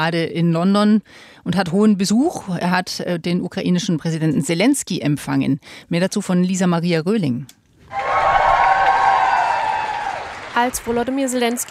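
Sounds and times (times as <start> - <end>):
speech: 0.0 - 8.2, 10.6 - 11.6
applause in front of 10 Downing Street in London for the Ukrainian president: 7.9 - 11.6.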